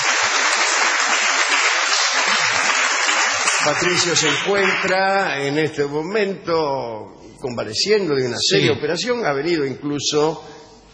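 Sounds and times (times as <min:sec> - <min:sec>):
audience applause: 0:00.0 - 0:05.4
speech: 0:03.6 - 0:10.6.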